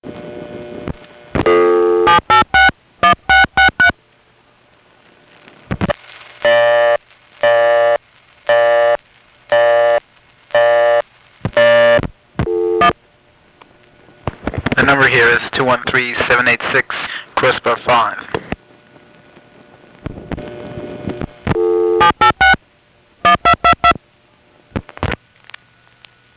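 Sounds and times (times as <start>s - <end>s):
local telephone busy signal: 1.4s - 3.9s, 6.4s - 10.0s, 10.6s - 11.0s, 11.6s - 13.0s, 21.5s - 22.6s, 23.2s - 24.0s
telephone ringing tone: 1.5s - 3.9s, 6.5s - 10.0s, 11.6s - 13.0s, 21.5s - 22.6s
speech: 15.1s - 18.3s.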